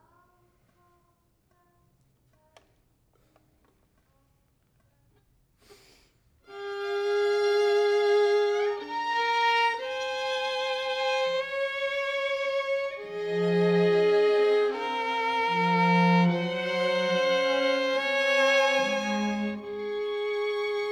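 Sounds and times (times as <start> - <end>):
violin: 6.5 - 20.9.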